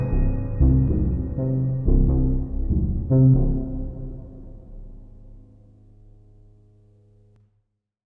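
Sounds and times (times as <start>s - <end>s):
tuba being carefully plucked: 0.0s - 5.5s.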